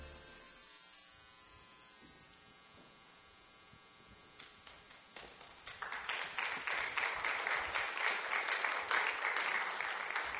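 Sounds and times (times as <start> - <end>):
audience applause: 5.1 - 10.3.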